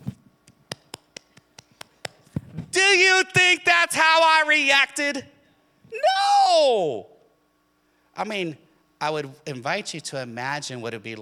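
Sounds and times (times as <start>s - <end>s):
golf clap, slow quiet clapping: 0.4s - 2.3s
speech: 2.9s - 5.3s, 6.0s - 7.1s, 8.2s - 11.2s.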